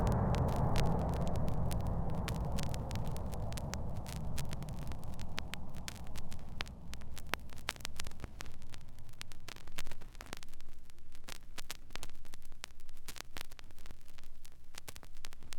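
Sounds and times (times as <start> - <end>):
jet taking off: 0.0 - 9.2.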